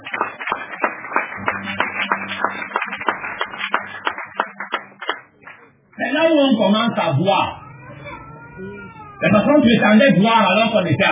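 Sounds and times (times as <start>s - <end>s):
audience applauding: 0.0s - 6.5s
speech: 6.3s - 7.6s, 8.6s - 11.0s.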